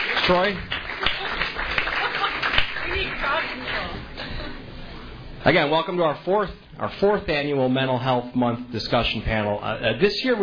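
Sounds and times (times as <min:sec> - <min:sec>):
round of applause for the library staff: 0:00.0 - 0:04.0
speech: 0:00.3 - 0:00.7, 0:02.9 - 0:04.5, 0:05.4 - 0:10.4.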